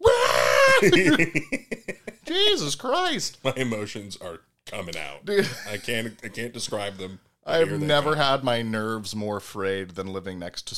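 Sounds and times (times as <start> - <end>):
voice imitating a child's raw scream: 0.0 - 1.0
laughter: 0.6 - 2.4
speech: 0.8 - 10.7.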